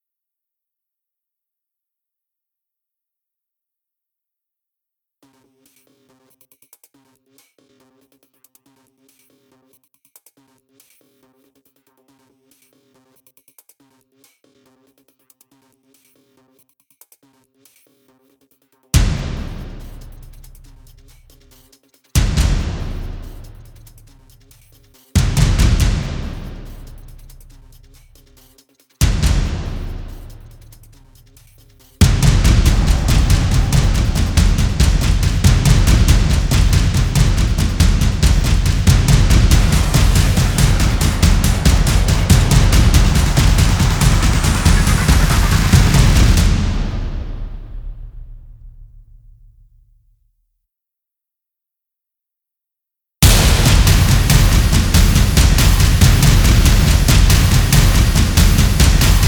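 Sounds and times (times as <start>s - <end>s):
percussion: 5.2s - 50.0s, 53.2s - 59.2s.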